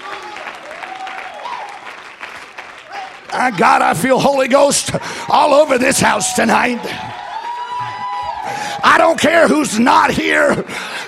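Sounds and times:
audience clapping hands: 0.0 - 5.2
speech: 3.4 - 7.2, 8.9 - 10.9.

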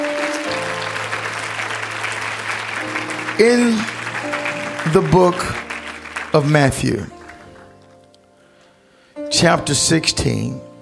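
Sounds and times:
audience clapping hands: 0.0 - 8.2
sustained organ-like tones: 0.0 - 8.4
speech: 3.4 - 3.9, 4.8 - 5.6, 6.3 - 7.2, 9.4 - 10.7.

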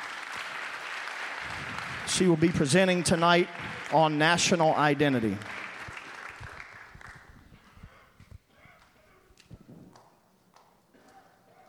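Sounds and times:
audience applause: 0.0 - 8.2
speech: 2.1 - 5.6.

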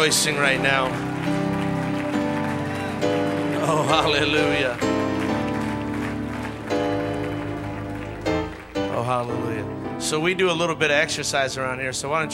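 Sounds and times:
speech: 0.0 - 1.4, 3.8 - 5.0, 9.0 - 12.3
crowd clapping hands in praise: 0.0 - 9.8
steady organ-like music: 0.0 - 12.3.

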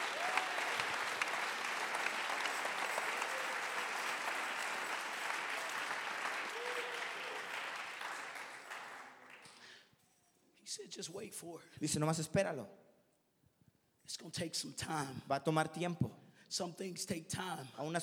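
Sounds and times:
audience clapping: 0.0 - 9.8
speech: 10.8 - 12.8, 14.2 - 18.0.

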